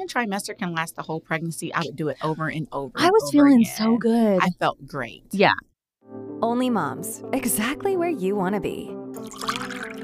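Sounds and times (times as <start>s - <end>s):
speech: 0.1s - 5.7s, 6.4s - 9.5s
wine poured into a glass: 9.2s - 10.0s.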